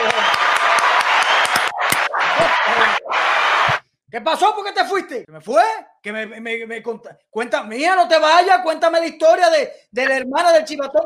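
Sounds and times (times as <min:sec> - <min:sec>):
applause: 0:00.0 - 0:03.8
speech: 0:04.1 - 0:11.0.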